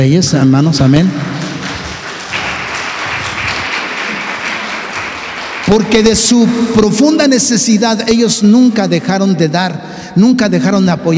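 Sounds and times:
speech: 0:00.0 - 0:01.4, 0:05.7 - 0:11.1
audience applause: 0:01.2 - 0:06.9.

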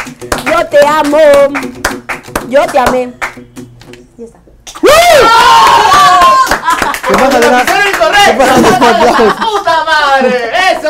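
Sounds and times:
speech: 0:00.1 - 0:03.2, 0:07.1 - 0:10.8
audience applause: 0:05.3 - 0:09.2
laughter: 0:06.4 - 0:10.8.

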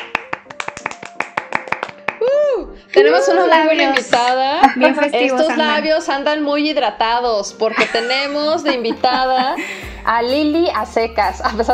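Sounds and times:
hand clapping: 0:00.0 - 0:02.3, 0:03.9 - 0:04.4
speech: 0:02.8 - 0:11.7
laughter: 0:07.7 - 0:09.9.

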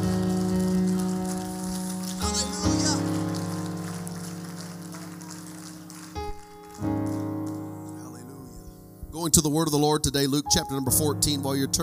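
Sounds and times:
audience clapping hands: 0:00.0 - 0:08.3
speech: 0:09.3 - 0:11.8.

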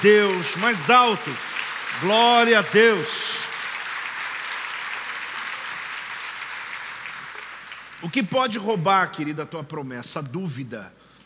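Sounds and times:
speech: 0:00.0 - 0:03.4, 0:08.0 - 0:11.0
audience applauding: 0:00.0 - 0:08.7.

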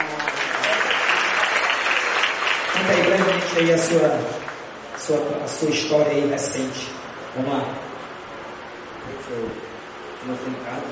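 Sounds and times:
audience applause: 0:00.0 - 0:05.1
speech: 0:02.8 - 0:04.4, 0:05.0 - 0:07.8, 0:09.2 - 0:10.9.

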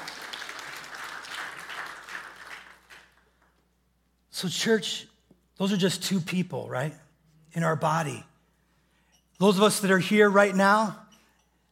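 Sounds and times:
audience clapping: 0:00.0 - 0:03.6
speech: 0:04.4 - 0:07.0, 0:07.6 - 0:08.3, 0:09.4 - 0:11.0.

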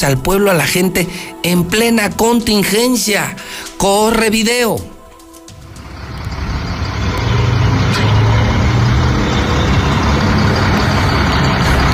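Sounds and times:
speech: 0:00.0 - 0:04.9
large tow truck operating: 0:05.5 - 0:11.9.

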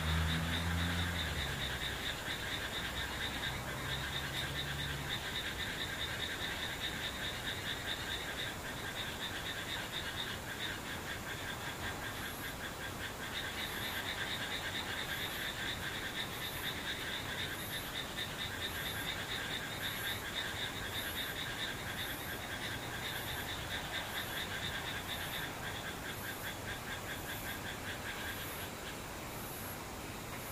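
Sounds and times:
distant insects trilling: 0:00.0 - 0:30.5.

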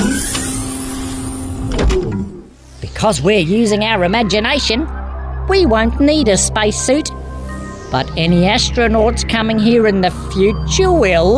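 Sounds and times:
motorized door sliding open with a mechanical whir: 0:00.0 - 0:02.6
speech: 0:03.0 - 0:07.2, 0:07.9 - 0:11.3.

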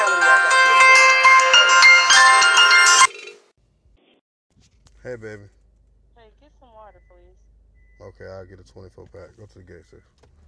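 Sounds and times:
phone ringtone for an incoming call: 0:00.0 - 0:03.3
speech: 0:05.0 - 0:05.6, 0:06.9 - 0:10.4.

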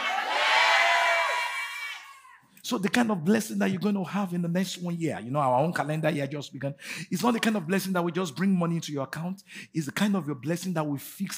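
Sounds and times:
church congregation shouting together with raised hands: 0:00.0 - 0:02.3
speech: 0:02.7 - 0:11.3.

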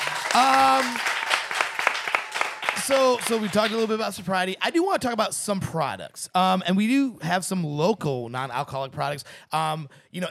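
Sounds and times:
high cheering voice: 0:00.0 - 0:03.9
crowd applauding: 0:00.0 - 0:04.3
speech: 0:00.4 - 0:01.1, 0:02.9 - 0:10.2.

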